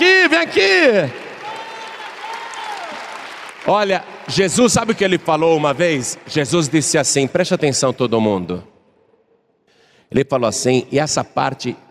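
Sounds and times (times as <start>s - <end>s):
audience applause: 0.2s - 6.7s
speech: 0.9s - 1.2s, 3.6s - 8.7s, 10.1s - 11.8s.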